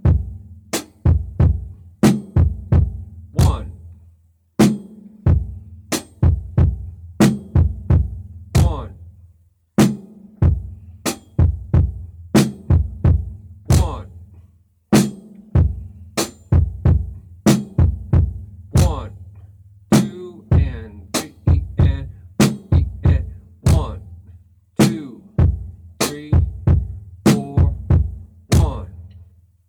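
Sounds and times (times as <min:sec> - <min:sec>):
beat: 0:00.0 - 0:03.8, 0:05.3 - 0:09.0, 0:10.4 - 0:14.2, 0:15.6 - 0:19.2, 0:19.9 - 0:24.1, 0:24.8 - 0:29.2.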